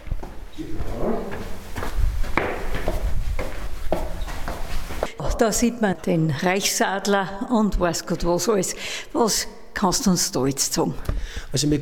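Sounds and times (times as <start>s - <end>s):
footsteps climbing a staircase: 0.0s - 5.2s, 11.0s - 11.5s
speech: 5.4s - 11.8s.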